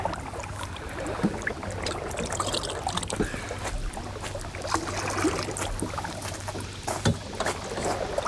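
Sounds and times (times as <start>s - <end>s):
steady low hum: 0.0s - 8.2s
water sloshing and splashing inside a rowboat full of water: 0.0s - 8.2s.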